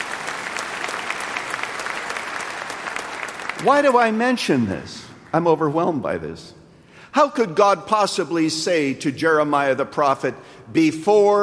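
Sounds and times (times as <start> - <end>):
audience clapping: 0.0 - 5.6
speech: 3.6 - 11.4.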